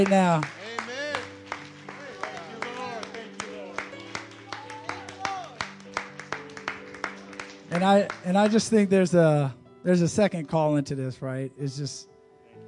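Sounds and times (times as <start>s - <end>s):
speech: 0.0s - 0.6s, 7.7s - 12.1s
church congregation clapping in rhythm: 0.0s - 8.9s
music in church: 0.0s - 12.6s.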